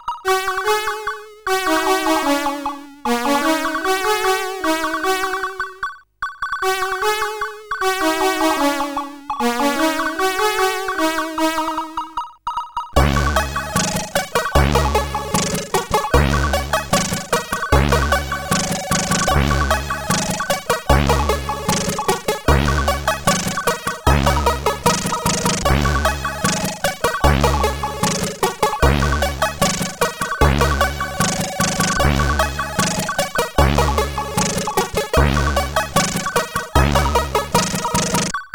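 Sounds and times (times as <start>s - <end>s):
SID CSG8580R5 chip music: 0.3s - 5.8s, 6.8s - 12.2s, 13.0s - 38.3s.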